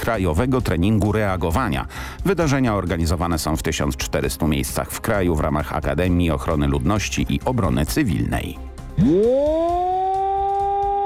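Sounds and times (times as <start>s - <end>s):
speech: 0.0s - 9.9s
modulated rising and falling civil alarm siren: 9.0s - 11.0s.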